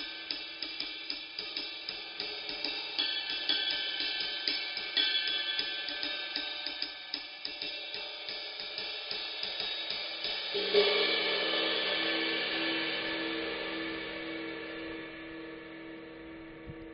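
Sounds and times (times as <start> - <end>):
Meinl Byzance 20 Medium Ride cymbal: 0.0 - 16.6.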